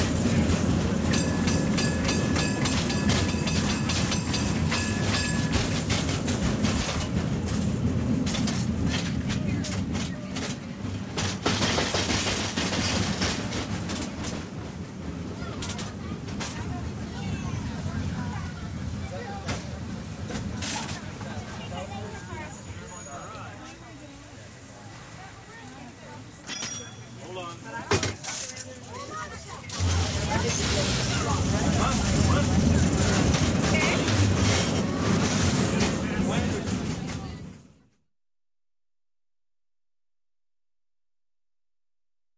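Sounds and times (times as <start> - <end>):
train station ambience: 0.0 - 38.0.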